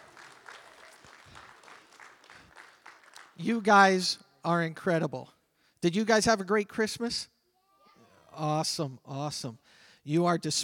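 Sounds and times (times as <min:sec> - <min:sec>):
audience applause: 0:00.0 - 0:03.4
speech: 0:03.4 - 0:07.3, 0:08.4 - 0:10.6.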